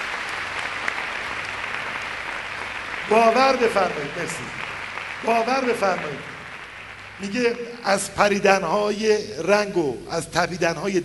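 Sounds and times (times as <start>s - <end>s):
audience at a self-confidence seminar applauding teachers: 0.0s - 8.1s
speech: 3.1s - 6.3s, 7.2s - 11.0s.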